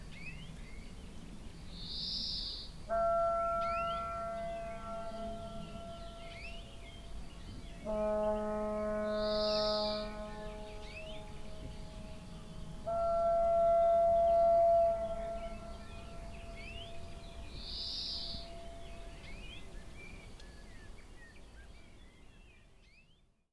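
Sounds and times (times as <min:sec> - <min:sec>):
foghorns on the Reymure plain: 0:02.8 - 0:20.3.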